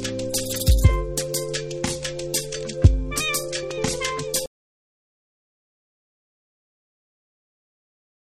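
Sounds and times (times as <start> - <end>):
afrosoul instrumental music: 0.0 - 4.5.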